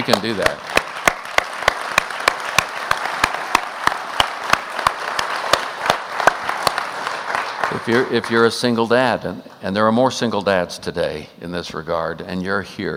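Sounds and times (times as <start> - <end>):
speech: 0.0 - 0.7, 7.8 - 12.9
audience applause: 0.0 - 8.5.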